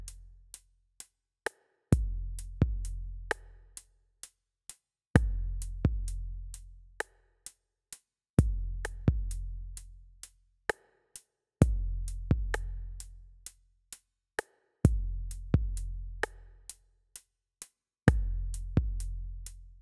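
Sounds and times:
drums and percussion: 1.0 - 3.9, 5.2 - 6.2, 8.4 - 13.1, 14.4 - 17.3, 18.1 - 19.6.

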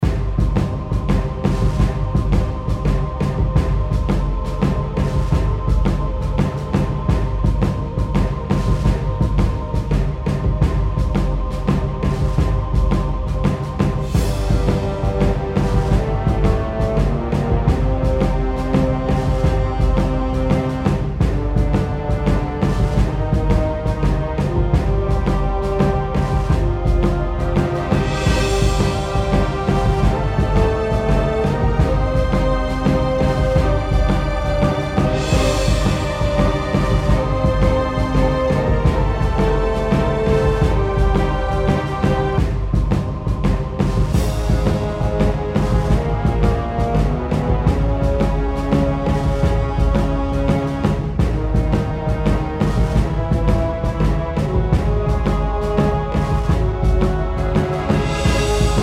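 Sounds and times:
epic battle music: 0.0 - 58.8.

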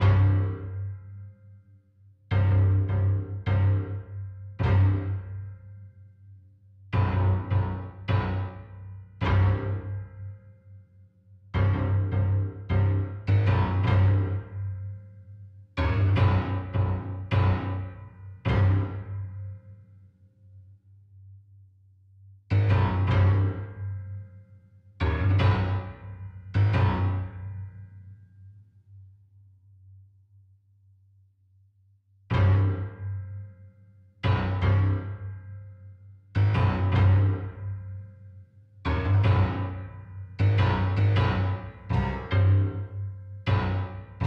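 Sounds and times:
fight bass music: 0.0 - 1.0, 2.3 - 5.6, 7.0 - 10.2, 11.6 - 15.0, 15.8 - 19.4, 22.5 - 23.8, 25.0 - 27.8, 32.3 - 33.1, 34.2 - 35.4, 36.4 - 38.0, 38.8 - 44.2.

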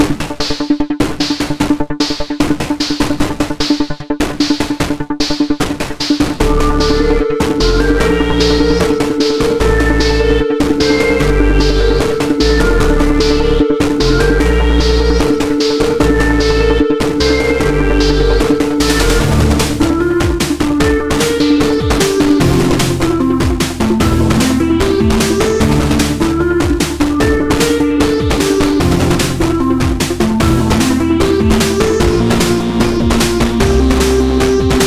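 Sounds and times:
music loop: 0.0 - 34.8.

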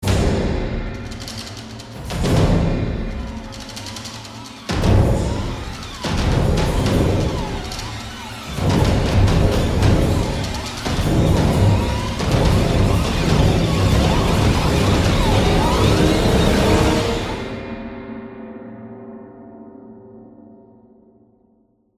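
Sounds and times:
trailer music crash: 0.0 - 18.2.

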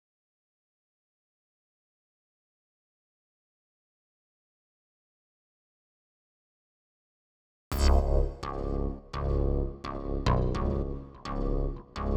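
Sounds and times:
bass: 7.7 - 12.1.

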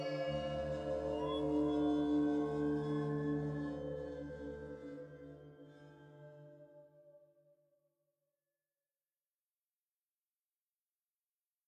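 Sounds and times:
savannah-themed music: 0.0 - 7.9.

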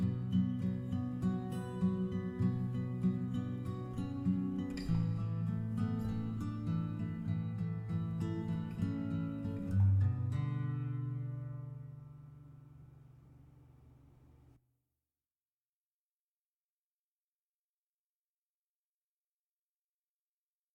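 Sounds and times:
menu music guitars stem: 0.0 - 14.4.

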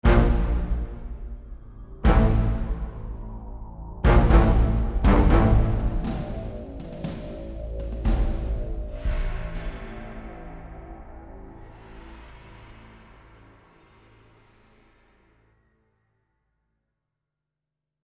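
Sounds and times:
tension music: 0.0 - 15.8.

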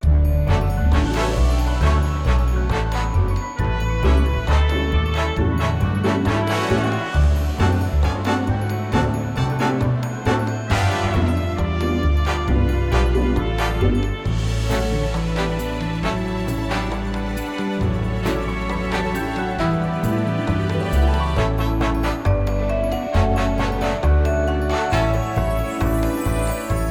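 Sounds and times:
game map music: 0.0 - 26.8.

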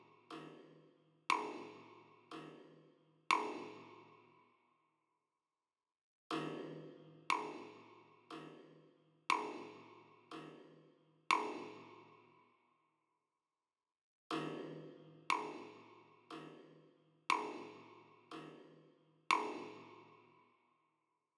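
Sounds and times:
drums and percussion: 0.0 - 4.1, 6.3 - 12.1, 14.3 - 20.1.

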